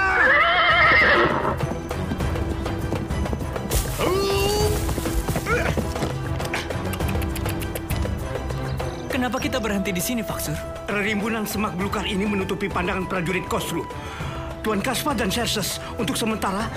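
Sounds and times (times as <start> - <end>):
horse neighing: 0.0 - 1.7
horse hooves clopping: 0.0 - 9.0
speech: 9.4 - 16.7.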